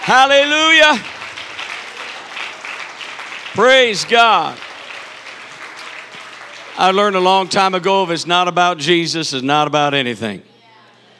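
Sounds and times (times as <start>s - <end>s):
speech: 0.0s - 1.2s, 3.6s - 4.7s, 6.8s - 10.5s
audience clapping hands: 0.0s - 8.5s.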